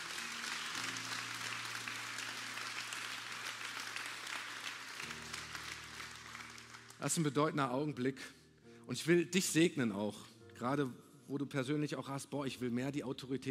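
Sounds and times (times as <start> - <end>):
audience applause: 0.0 - 7.2
speech: 7.0 - 13.4.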